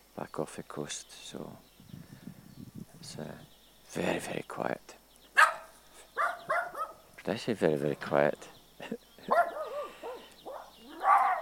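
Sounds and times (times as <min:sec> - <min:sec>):
speech: 0:00.2 - 0:02.1, 0:03.0 - 0:05.0, 0:07.2 - 0:09.4
dog barking: 0:05.4 - 0:07.0, 0:09.3 - 0:11.4.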